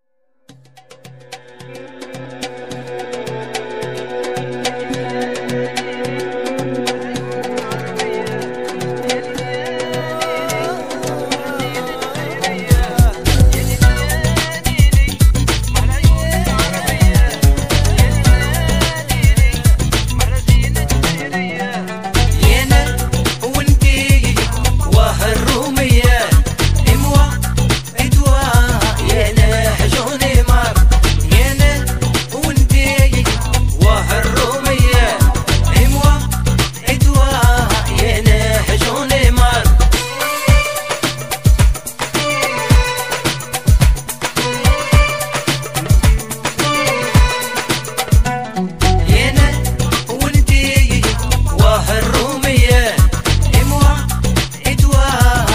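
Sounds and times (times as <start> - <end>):
Arabic groove music: 0.6 - 55.5.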